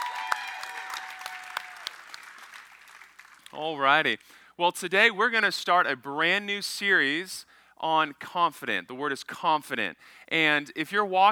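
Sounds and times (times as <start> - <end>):
audience applause for a speaker's wife: 0.0 - 3.5
speech: 3.5 - 11.3.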